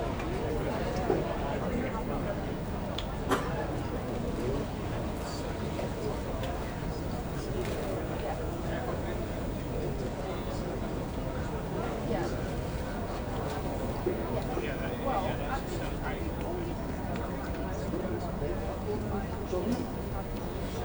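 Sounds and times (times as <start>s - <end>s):
airport baggage claim interior ambience in Manchester Airport: 0.0s - 20.8s.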